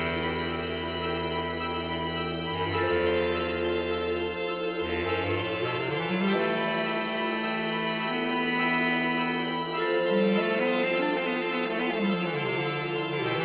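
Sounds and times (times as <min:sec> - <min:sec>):
bass clarinet: 0:00.0 - 0:13.4.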